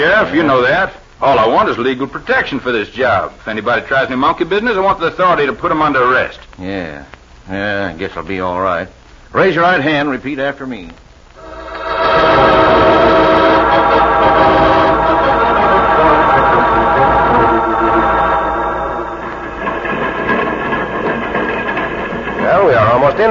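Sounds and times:
speech: 0:00.0 - 0:11.0
sustained metallic whine: 0:11.4 - 0:23.2
train running on rails, slowing down: 0:11.4 - 0:23.2.

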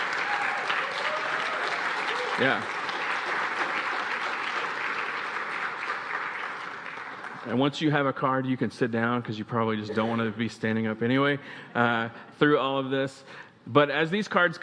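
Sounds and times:
audience applause: 0:00.0 - 0:07.7
speech: 0:02.4 - 0:02.8, 0:07.5 - 0:14.6.

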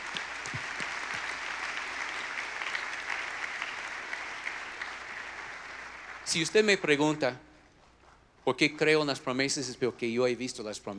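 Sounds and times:
audience applause: 0:00.0 - 0:06.6
speech: 0:06.3 - 0:07.5, 0:08.4 - 0:10.9.

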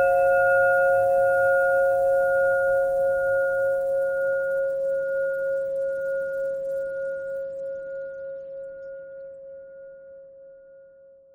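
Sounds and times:
pentatonic bell melody: 0:00.0 - 0:07.5.

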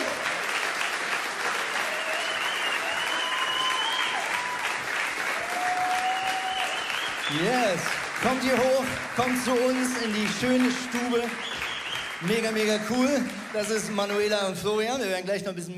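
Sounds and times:
audience applause: 0:00.0 - 0:14.8
faint whistles and cheers: 0:01.6 - 0:07.8, 0:11.1 - 0:12.2
speech: 0:07.3 - 0:11.6, 0:12.2 - 0:15.7.

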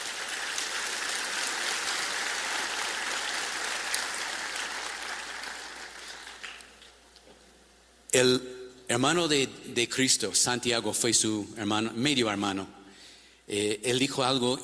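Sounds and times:
audience applause: 0:00.0 - 0:06.8
speech: 0:08.1 - 0:12.8, 0:13.5 - 0:14.6.

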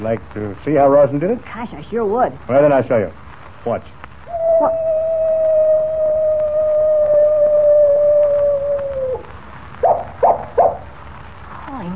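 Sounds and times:
speech: 0:00.0 - 0:04.0, 0:04.6 - 0:05.0
coyote howling: 0:04.2 - 0:10.9.

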